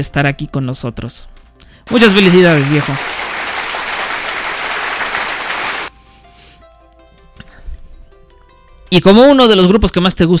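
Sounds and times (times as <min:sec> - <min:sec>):
speech: 0:00.0 - 0:03.2, 0:08.9 - 0:10.3
quiet music: 0:00.0 - 0:03.4, 0:05.9 - 0:10.3
applause greeting a birthday dedication: 0:01.9 - 0:05.9.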